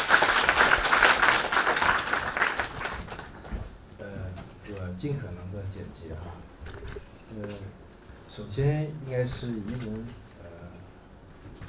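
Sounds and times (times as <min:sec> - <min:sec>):
audience applause: 0:00.0 - 0:03.4
speech: 0:07.4 - 0:10.2.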